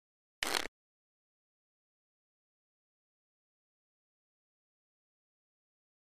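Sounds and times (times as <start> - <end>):
deck of cards shuffling: 0.4 - 0.7.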